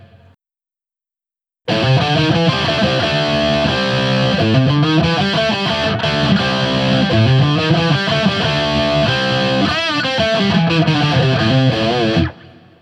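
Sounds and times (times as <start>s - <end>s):
Guild S300 guitar riff through Axe-FX Ultra and QSC K12 speaker: 0.0s - 0.4s, 1.7s - 12.7s.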